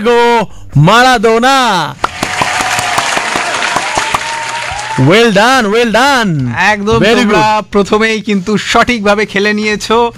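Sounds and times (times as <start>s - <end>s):
speech: 0.0s - 2.1s, 5.0s - 10.1s
applause for quiz players who gave the right answer: 2.0s - 5.2s.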